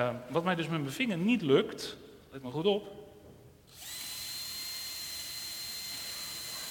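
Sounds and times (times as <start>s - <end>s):
speech: 0.0s - 3.0s
cordless power drill running at full speed: 3.7s - 6.6s.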